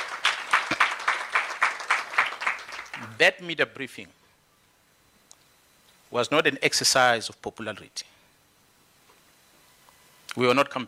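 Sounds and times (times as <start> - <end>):
audience applauding: 0.0 - 3.2
speech: 3.2 - 4.2, 6.1 - 8.1, 10.4 - 10.8.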